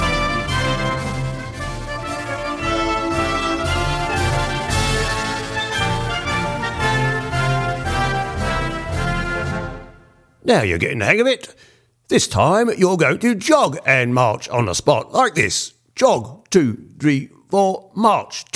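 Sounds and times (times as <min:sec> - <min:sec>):
march music: 0:00.0 - 0:10.3
voice-over narration: 0:10.4 - 0:18.5.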